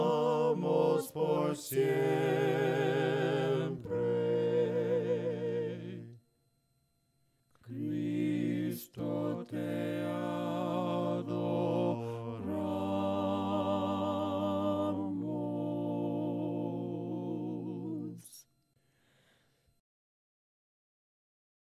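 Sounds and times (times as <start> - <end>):
voices singing a cappella hymn: 0.0 - 6.2, 7.6 - 18.5.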